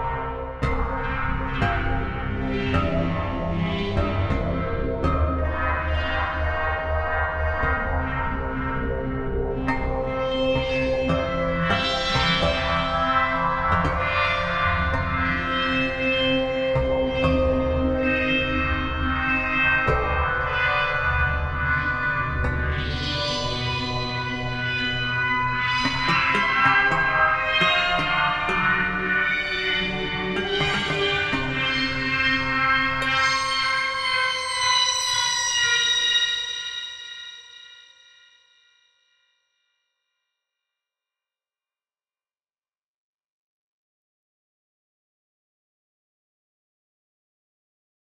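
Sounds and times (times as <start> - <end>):
string instrument: 0.0 - 36.9.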